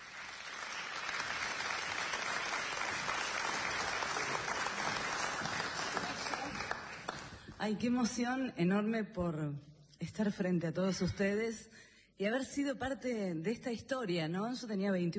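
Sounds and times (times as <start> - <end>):
audience applause: 0.0 - 7.5
speech: 7.6 - 15.1.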